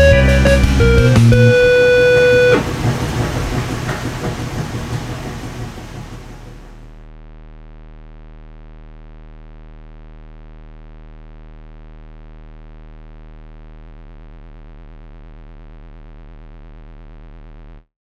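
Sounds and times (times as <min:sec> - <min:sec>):
washing machine: 0:00.2 - 0:06.9.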